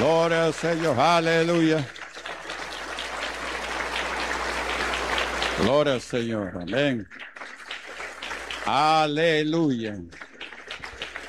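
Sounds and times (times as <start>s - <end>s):
speech: 0.0s - 2.0s, 5.6s - 7.3s, 8.7s - 10.2s
audience applause: 0.0s - 11.2s.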